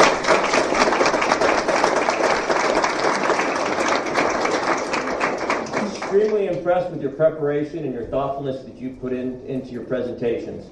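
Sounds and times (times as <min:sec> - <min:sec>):
audience applause: 0:00.0 - 0:06.6
speech: 0:06.7 - 0:10.7.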